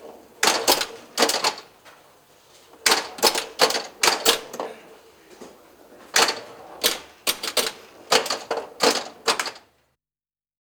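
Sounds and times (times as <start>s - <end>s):
1970s pinball machine mechanism: 0.4s - 2.0s, 2.8s - 5.0s, 5.9s - 9.7s.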